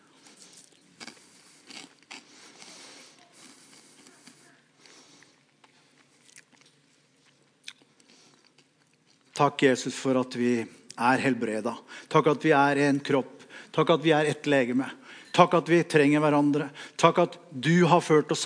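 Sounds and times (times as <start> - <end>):
congregants chewing communion bread at a church service: 0.0 - 9.4
speech: 9.4 - 18.4.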